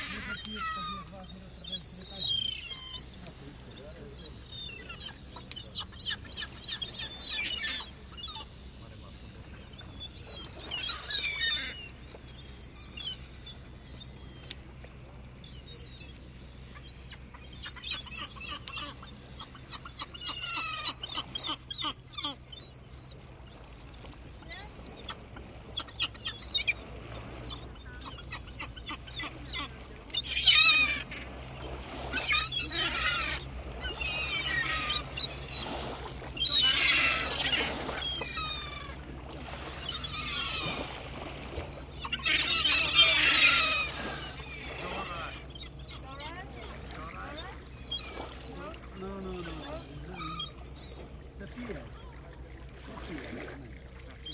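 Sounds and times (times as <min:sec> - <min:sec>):
gulls calling in a busy chorus: 0:00.0 - 0:54.3
low steady hum: 0:00.0 - 0:54.3.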